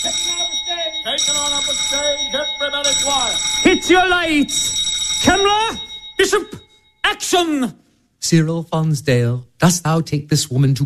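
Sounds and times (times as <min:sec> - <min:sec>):
film set electric bell ringing to signal a take: 0:00.0 - 0:07.3
speech: 0:02.3 - 0:10.8.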